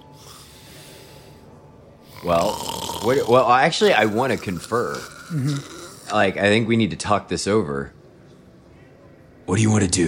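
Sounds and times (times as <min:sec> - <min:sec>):
person imitating a sleeping man's snore: 0:02.1 - 0:06.4
speech: 0:02.2 - 0:08.0, 0:09.5 - 0:10.0.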